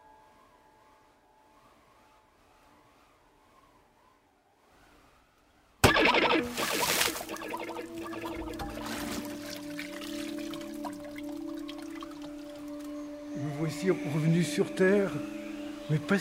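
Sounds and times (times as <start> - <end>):
someone falling into water with a loud splash: 5.8 - 12.7
speech: 13.8 - 16.1.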